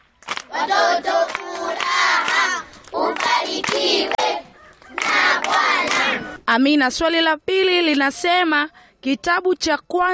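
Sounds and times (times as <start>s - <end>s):
clapping inside a TAG church in Kasulu: 0.0s - 6.4s
speech: 0.6s - 2.0s, 3.1s - 4.2s, 5.4s - 10.1s
lively children's voices: 0.6s - 6.4s.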